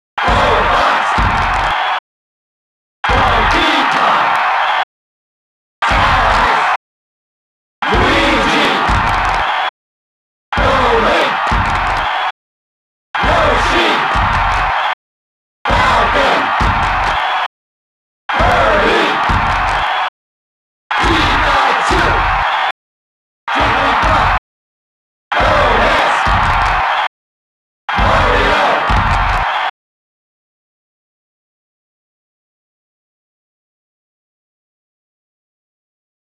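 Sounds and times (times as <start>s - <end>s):
crowd: 0.2s - 2.0s, 3.0s - 4.9s, 5.8s - 6.8s, 7.8s - 9.8s, 10.5s - 12.4s, 13.2s - 15.0s, 15.6s - 17.5s, 18.3s - 20.2s, 20.9s - 22.8s, 23.5s - 24.4s, 25.3s - 27.1s, 27.8s - 29.8s.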